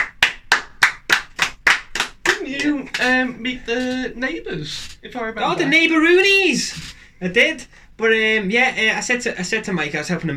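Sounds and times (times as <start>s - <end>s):
sharp loud claps: 0.0s - 3.2s
speech: 2.5s - 10.3s.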